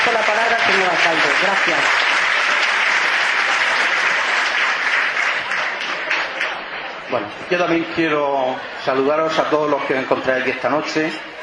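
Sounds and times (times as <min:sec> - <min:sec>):
audience applause: 0:00.0 - 0:07.1
speech: 0:00.1 - 0:02.2, 0:07.1 - 0:11.3.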